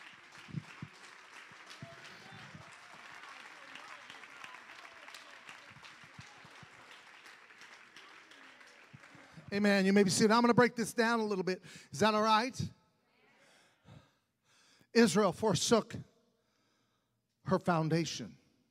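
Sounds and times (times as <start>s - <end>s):
audience clapping in praise: 0.0s - 10.5s
speech: 9.5s - 12.8s, 15.0s - 16.1s, 17.5s - 18.4s.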